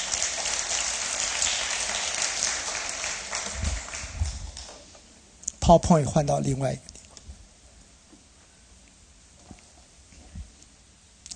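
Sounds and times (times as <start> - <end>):
audience applause: 0.0 - 4.9
speech: 5.7 - 6.9.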